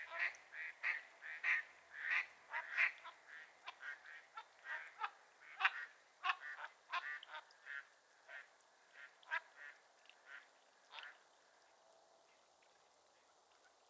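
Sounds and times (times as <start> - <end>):
mallards quacking: 0.1 - 11.2.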